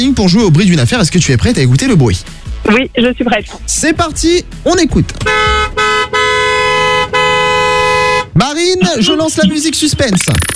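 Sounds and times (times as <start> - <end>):
speech: 0.0 - 5.5, 8.4 - 10.5
car horn honking in a traffic jam: 5.2 - 9.7.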